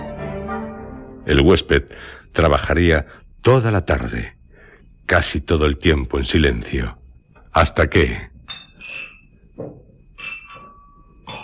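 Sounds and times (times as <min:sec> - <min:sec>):
speech: 0:01.3 - 0:04.4, 0:05.1 - 0:07.0, 0:07.6 - 0:09.0
glass bottles clinking together: 0:08.4 - 0:11.4.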